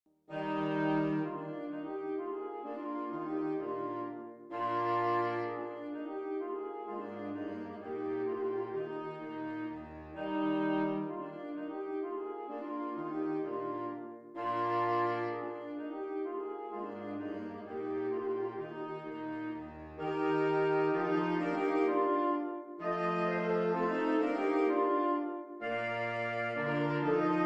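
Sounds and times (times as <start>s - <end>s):
classical minuet in E-flat: 0.3s - 27.4s.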